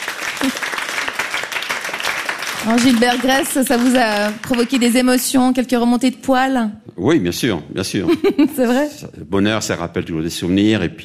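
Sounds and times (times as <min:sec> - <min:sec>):
audience applause: 0:00.0 - 0:05.3
speech: 0:02.6 - 0:11.0
laughter: 0:08.0 - 0:08.8.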